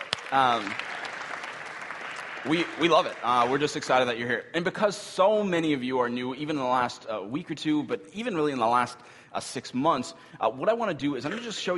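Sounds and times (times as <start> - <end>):
crowd applause: 0.0 - 4.0
speech: 0.3 - 0.9, 2.4 - 11.7.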